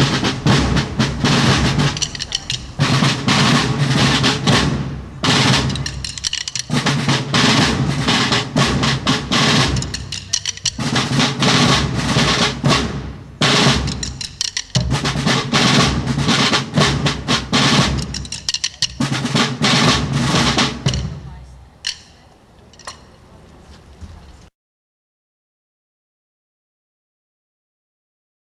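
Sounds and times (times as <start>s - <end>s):
drum played with a stick: 0.0s - 22.2s.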